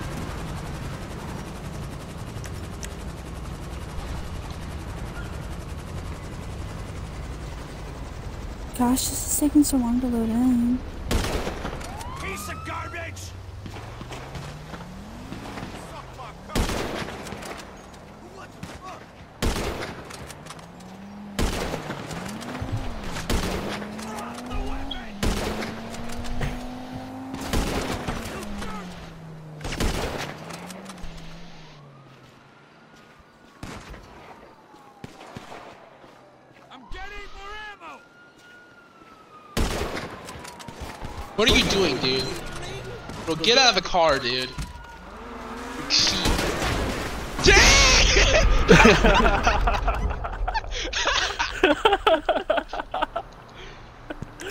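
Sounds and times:
speech: 8.8s - 11.0s, 41.5s - 42.4s, 43.4s - 44.6s, 48.7s - 49.7s
gunshots in a gun battle: 11.0s - 12.4s, 13.6s - 17.8s, 18.4s - 20.6s, 21.2s - 31.4s, 39.6s - 42.4s, 45.7s - 48.8s
laughter: 47.8s - 54.4s.

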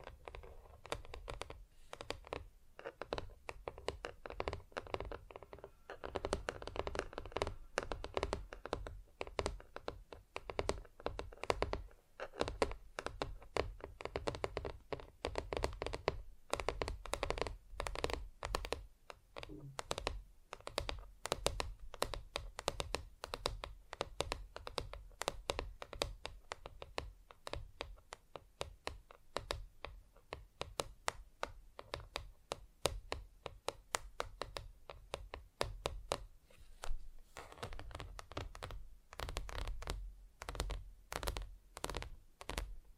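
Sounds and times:
fingers tapping on different surfaces: 0.0s - 36.9s, 37.5s - 42.9s.

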